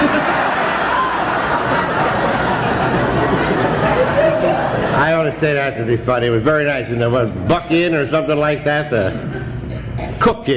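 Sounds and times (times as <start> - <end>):
audience cheering: 0.0 - 5.0
laughter: 0.0 - 5.3, 9.0 - 10.2
speech: 5.3 - 9.3, 10.2 - 10.5.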